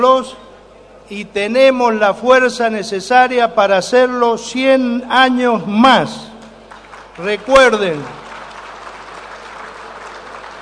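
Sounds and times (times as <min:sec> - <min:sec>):
speech: 0:00.0 - 0:00.4, 0:01.1 - 0:06.3, 0:07.2 - 0:08.2
audience applause in a chamber: 0:06.7 - 0:10.6.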